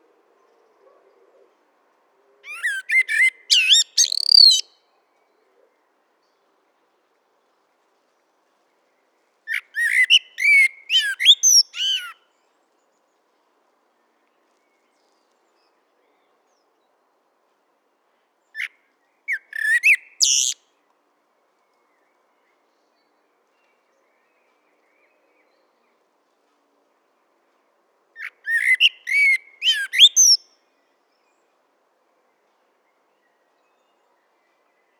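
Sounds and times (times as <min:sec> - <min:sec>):
Eurasian blackbird song: 0:02.5 - 0:05.4, 0:09.5 - 0:12.2, 0:19.3 - 0:20.6, 0:28.2 - 0:30.5.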